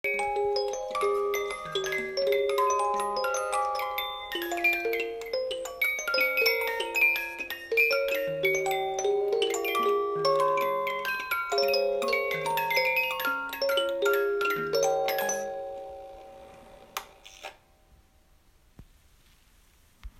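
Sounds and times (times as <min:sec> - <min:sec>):
music box: 0:00.0 - 0:17.5.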